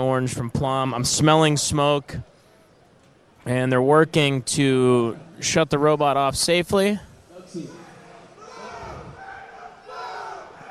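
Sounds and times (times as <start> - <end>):
speech: 0.0 - 2.3, 3.4 - 7.8
crowd cheering at a robot combat event: 7.7 - 10.6.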